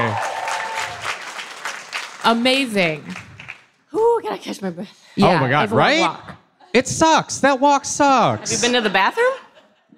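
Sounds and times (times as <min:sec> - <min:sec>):
audience clapping: 0:00.0 - 0:03.9
speech: 0:02.2 - 0:03.2, 0:03.9 - 0:09.4.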